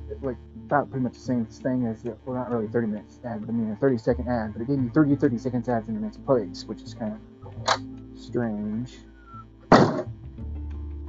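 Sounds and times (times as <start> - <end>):
speech: 0.2 - 9.1
door thudding, not shutting properly: 9.7 - 10.1.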